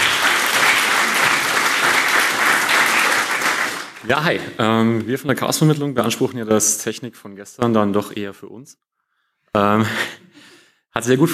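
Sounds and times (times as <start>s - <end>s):
large audience applause: 0.0s - 4.4s
speech: 4.1s - 8.9s, 9.5s - 11.3s.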